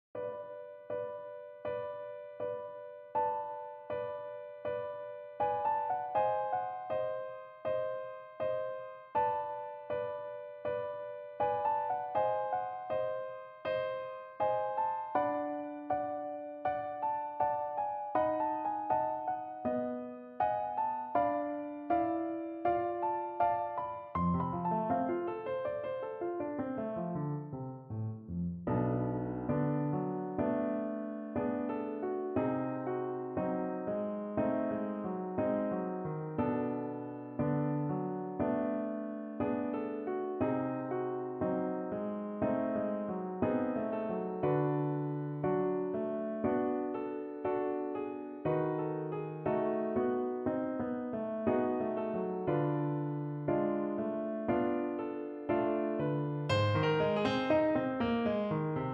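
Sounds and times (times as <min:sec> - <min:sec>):
piano: 0:00.0 - 0:58.9.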